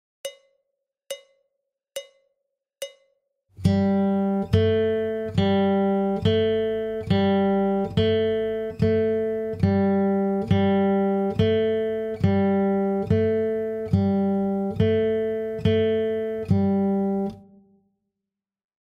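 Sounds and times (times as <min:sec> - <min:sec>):
guitar warm-up exercise in A, medium: 0:03.6 - 0:17.6.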